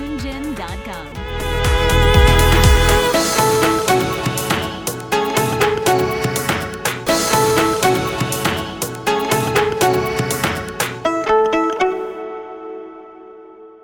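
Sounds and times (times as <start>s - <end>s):
tango music: 1.1s - 11.0s.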